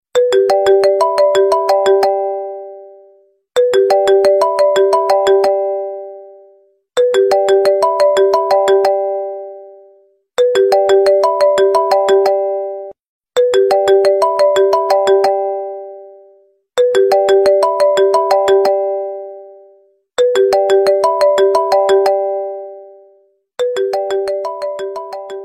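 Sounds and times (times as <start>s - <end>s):
iPhone 11 ringtone: 0.2s - 25.4s.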